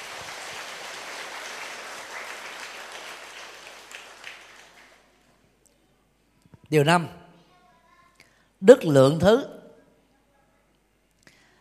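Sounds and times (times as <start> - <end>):
audience applause: 0.0 - 5.2
speech: 6.7 - 7.2, 8.7 - 9.6.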